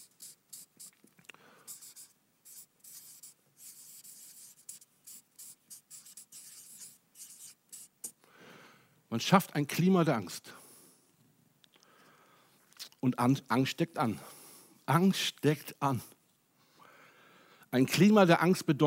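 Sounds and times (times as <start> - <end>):
handwriting by pen: 0.0 - 1.0, 1.7 - 8.1
speech: 9.1 - 10.6, 13.0 - 14.3, 14.9 - 16.2, 17.7 - 18.8.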